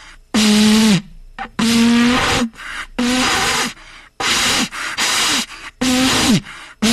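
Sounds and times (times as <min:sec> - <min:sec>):
weak World Cup vuvuzela blowing: 0:00.3 - 0:06.9.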